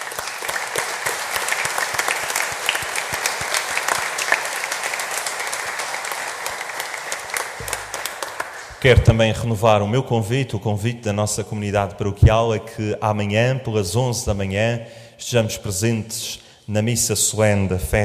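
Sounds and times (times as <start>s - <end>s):
audience applause: 0.0s - 8.8s
speech: 8.8s - 18.0s.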